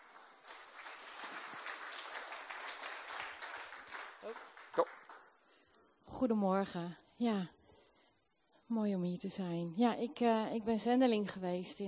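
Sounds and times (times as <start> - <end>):
audience applause: 0.0 - 5.3
speech: 4.2 - 5.0, 6.2 - 7.6, 8.7 - 11.8.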